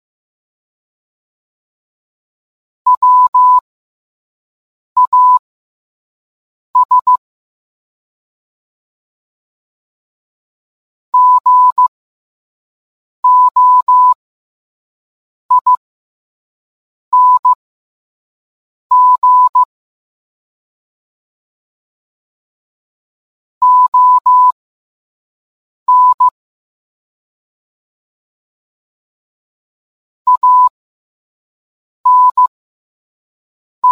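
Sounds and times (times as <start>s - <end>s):
morse code beeps: 2.9s - 3.6s, 5.0s - 5.4s, 6.8s - 7.2s, 11.2s - 11.9s, 13.2s - 14.2s, 15.5s - 15.8s, 17.1s - 17.6s, 18.9s - 19.7s, 23.6s - 24.6s, 25.9s - 26.4s, 30.3s - 30.7s, 32.1s - 32.5s.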